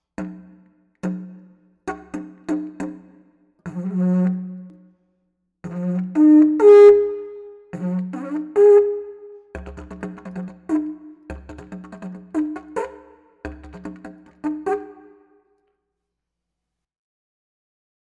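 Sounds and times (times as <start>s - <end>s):
didgeridoo: 1.9s - 4.6s, 5.7s - 15.2s.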